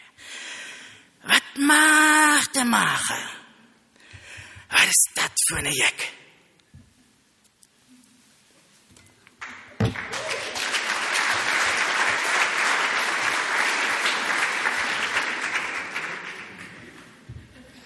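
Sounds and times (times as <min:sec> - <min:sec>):
speech: 0:01.6 - 0:02.0, 0:02.6 - 0:03.3, 0:04.8 - 0:06.2
audience applause: 0:09.4 - 0:17.3.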